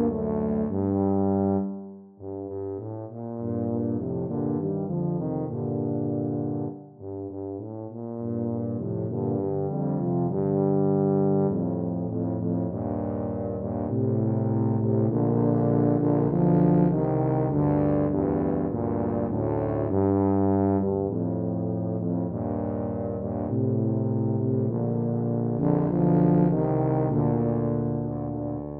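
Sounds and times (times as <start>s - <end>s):
tuba trio playing: 0.0s - 28.7s.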